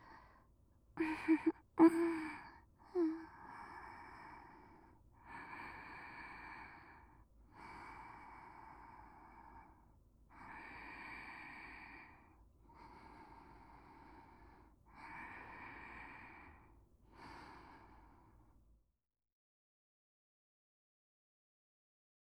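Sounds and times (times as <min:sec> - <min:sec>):
sleeping breath: 0:01.0 - 0:18.6.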